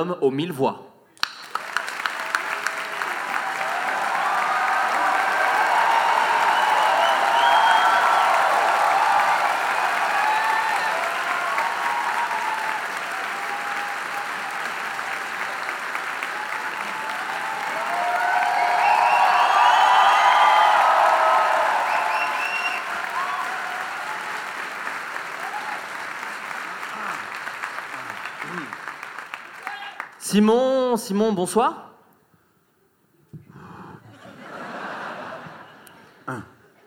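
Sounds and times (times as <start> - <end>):
speech: 0.0 - 0.9, 30.4 - 31.8
live audience applause and cheering: 1.2 - 30.2
laughter: 34.0 - 36.8.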